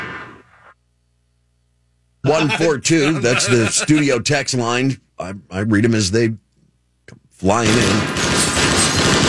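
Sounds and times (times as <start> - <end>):
laughter: 2.3 - 4.4
speech: 2.3 - 6.4, 7.1 - 8.2
gunshot sound effect: 8.0 - 9.2.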